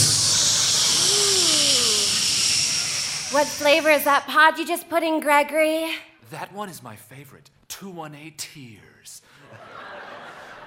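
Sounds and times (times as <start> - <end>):
Keurig single-serve coffee maker brewing: 0.0 - 4.2
speech: 3.3 - 9.8
laughter: 9.4 - 10.6.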